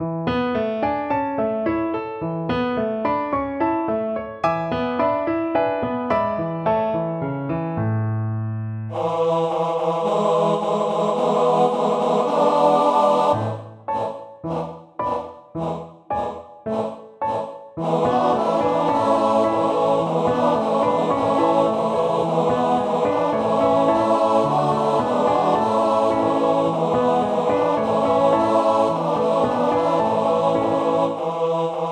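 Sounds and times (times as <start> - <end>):
piano: 0.0 - 9.0, 11.1 - 31.4
four-part male choir singing in Low German: 8.9 - 31.9.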